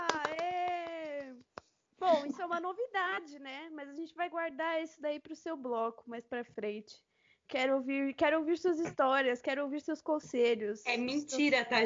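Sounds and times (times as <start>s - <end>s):
people clapping hands in a brisk rhythm: 0.0s - 1.8s
speech: 2.5s - 11.8s.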